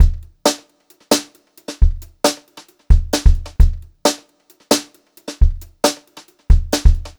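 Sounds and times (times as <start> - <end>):
brushed drum loops: 0.0 - 7.1.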